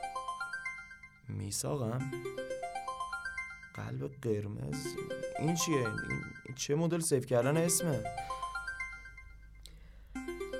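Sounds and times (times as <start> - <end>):
melodic phone ringtone: 0.0 - 6.7, 7.4 - 10.5
speech: 1.3 - 2.5, 3.8 - 8.4.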